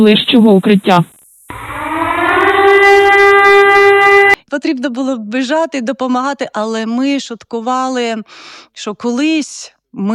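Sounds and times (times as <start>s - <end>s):
speech: 0.0s - 1.8s, 4.5s - 10.1s
civil defense air raid siren wailing: 1.5s - 4.4s.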